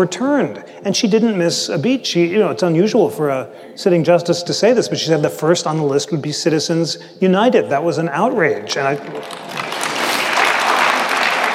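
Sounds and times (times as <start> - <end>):
speech: 0.0 - 9.7
audience clapping during a political talk: 8.8 - 11.5.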